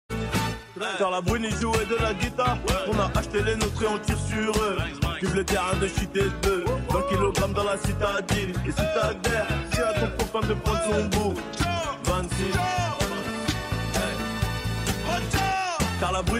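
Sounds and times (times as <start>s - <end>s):
funk music: 0.1s - 16.3s.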